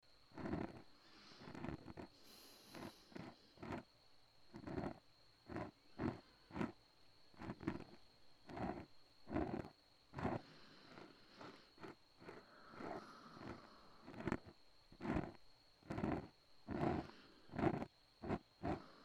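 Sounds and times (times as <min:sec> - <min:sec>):
ear cleaning: 0:00.4 - 0:03.8, 0:04.6 - 0:06.8, 0:07.4 - 0:19.0
breathing into the left ear: 0:00.4 - 0:03.9, 0:08.6 - 0:19.0.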